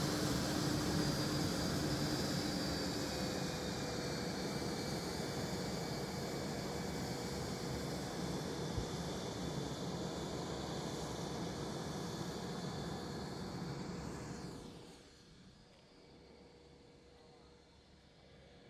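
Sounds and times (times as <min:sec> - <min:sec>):
BAE Hawk 127 jet aircraft idling while taxiing: 0:00.0 - 0:14.9.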